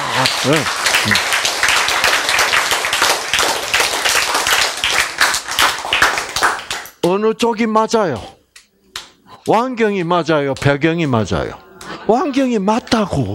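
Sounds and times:
clapping: 0:00.0 - 0:07.1
speech: 0:00.2 - 0:01.3, 0:07.1 - 0:08.4, 0:09.5 - 0:13.3.

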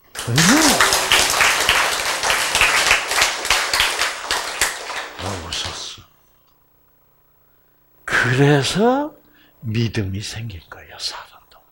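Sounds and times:
audience applause: 0:00.0 - 0:05.9
speech: 0:00.3 - 0:00.8, 0:08.4 - 0:11.2.

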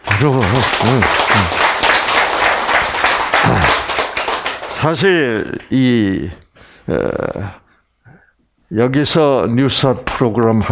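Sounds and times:
crowd applauding: 0:00.0 - 0:05.5
speech: 0:00.2 - 0:01.6, 0:04.8 - 0:07.6, 0:08.7 - 0:10.7.

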